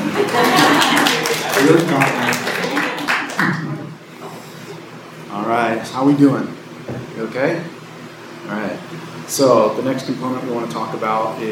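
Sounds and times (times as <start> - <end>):
chuckling: 0.0 - 1.3
audience clapping: 0.0 - 3.9
speech: 1.6 - 2.4, 6.0 - 7.7, 9.3 - 11.5.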